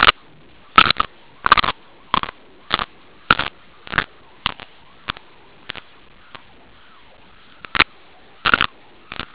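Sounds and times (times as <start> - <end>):
crunch: 0.8 - 6.4, 7.6 - 9.3.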